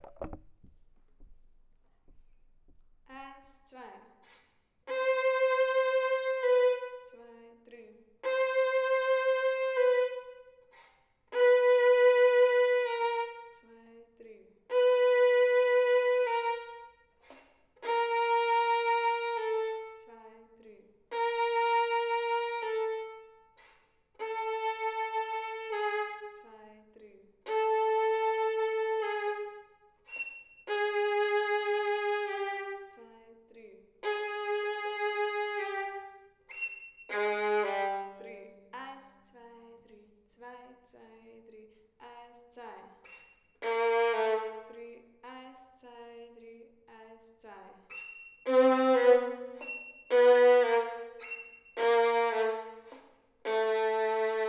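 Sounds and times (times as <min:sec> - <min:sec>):
violin: 0:04.2 - 0:07.2, 0:08.2 - 0:13.6, 0:14.7 - 0:20.4, 0:21.1 - 0:26.6, 0:27.4 - 0:33.1, 0:34.0 - 0:38.6, 0:43.0 - 0:44.9, 0:47.9 - 0:54.4.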